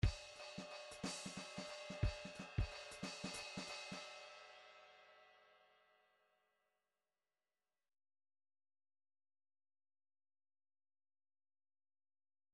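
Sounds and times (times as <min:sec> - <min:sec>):
rhythmic groove in three-four time: 0:00.0 - 0:04.0.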